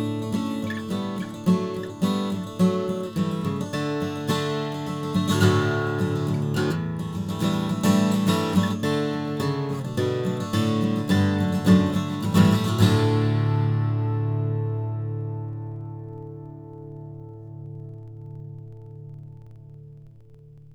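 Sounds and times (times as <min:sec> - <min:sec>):
Model J Brazilian guitar in DADGAD tuning: 0:00.0 - 0:20.0.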